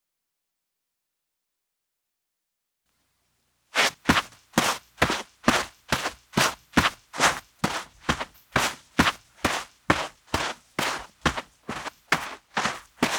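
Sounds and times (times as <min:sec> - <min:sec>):
walking on sand: 0:03.8 - 0:13.1.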